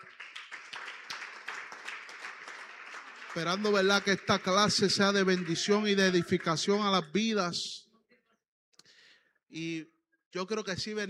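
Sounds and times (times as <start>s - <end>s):
audience applause: 0.0s - 7.1s
speech: 3.4s - 7.8s, 9.5s - 11.0s.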